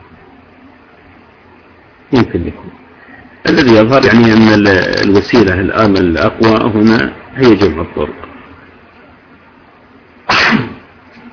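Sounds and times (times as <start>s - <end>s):
speech: 2.1s - 2.8s, 3.4s - 8.3s
person sneezing during a hadith study lecture: 10.3s - 10.9s.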